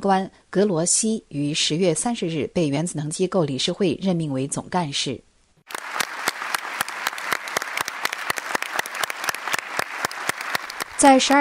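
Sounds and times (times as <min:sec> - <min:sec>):
speech: 0:00.0 - 0:05.8, 0:11.0 - 0:11.3
delegates applauding: 0:05.7 - 0:11.3.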